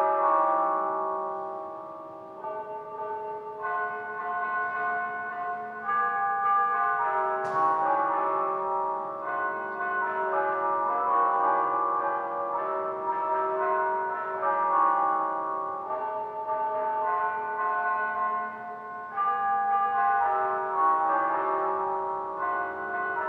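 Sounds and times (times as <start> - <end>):
bell tower bells ringing: 0.0 - 23.2.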